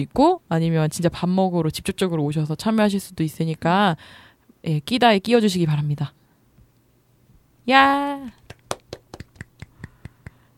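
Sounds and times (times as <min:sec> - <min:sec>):
speech: 0:00.0 - 0:06.2, 0:07.7 - 0:08.4
person clapping hands: 0:08.3 - 0:10.5.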